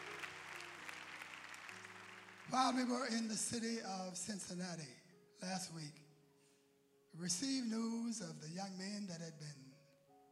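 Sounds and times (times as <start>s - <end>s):
crowd clapping: 0.0s - 3.4s
speech: 2.5s - 6.0s, 7.1s - 9.7s.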